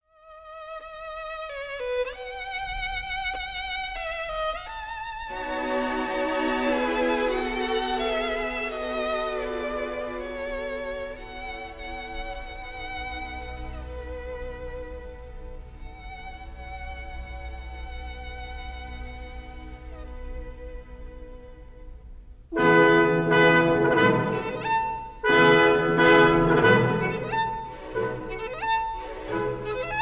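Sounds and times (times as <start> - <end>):
violin concerto: 0.0 - 29.9.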